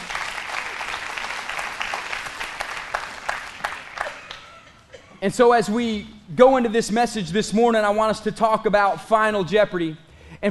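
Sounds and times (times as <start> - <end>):
audience clapping: 0.0 - 4.9
speech: 5.2 - 10.4.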